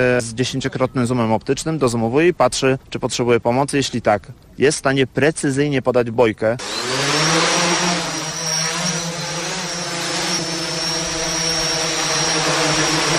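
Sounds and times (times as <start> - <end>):
speech: 0.0 - 7.0
rescue drone hovering over a target: 6.6 - 13.1.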